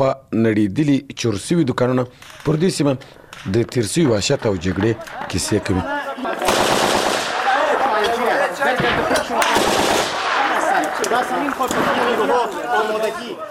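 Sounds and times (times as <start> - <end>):
speech: 0.0 - 6.4, 11.1 - 13.4
laughter: 3.4 - 13.4
automatic gunfire from Afghan forces in combat: 6.4 - 8.0, 9.0 - 12.2.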